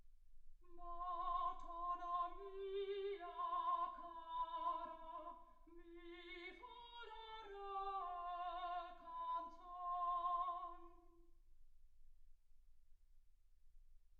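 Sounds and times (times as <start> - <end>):
soprano singing: 0.7 - 11.3.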